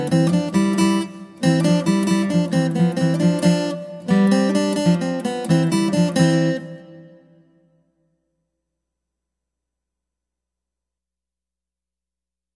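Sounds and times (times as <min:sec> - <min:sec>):
guitar: 0:00.0 - 0:08.3.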